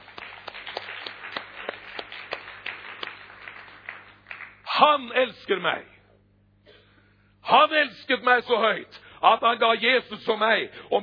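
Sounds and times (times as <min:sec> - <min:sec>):
audience applause: 0:00.0 - 0:04.6
speech: 0:04.8 - 0:05.9, 0:07.5 - 0:11.0.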